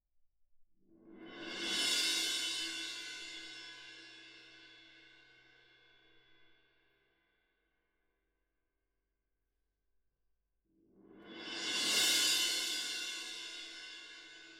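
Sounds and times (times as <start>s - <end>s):
percussion: 1.0s - 6.6s, 11.0s - 14.5s.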